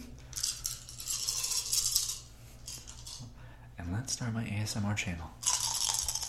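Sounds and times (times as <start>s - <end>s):
low steady hum: 0.0s - 6.2s
handful of dice rattling and clattering: 0.3s - 3.2s, 5.4s - 6.2s
speech: 3.9s - 5.4s.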